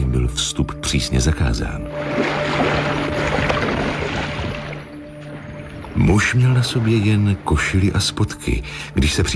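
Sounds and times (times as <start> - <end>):
speech: 0.2 - 2.7, 6.0 - 9.3
ship propeller churning water: 1.8 - 7.7.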